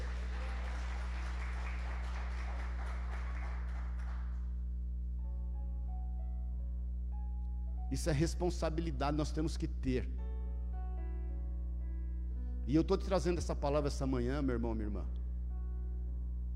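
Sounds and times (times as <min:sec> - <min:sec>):
audience applauding: 0:00.0 - 0:04.5
constant low hum: 0:00.0 - 0:16.5
speech: 0:07.9 - 0:10.2, 0:12.7 - 0:15.2.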